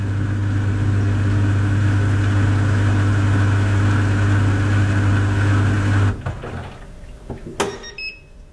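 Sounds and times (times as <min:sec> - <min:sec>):
small European clothes dryer running with a droning hum: 0:00.0 - 0:08.2
short high electronic beep: 0:07.7 - 0:08.3.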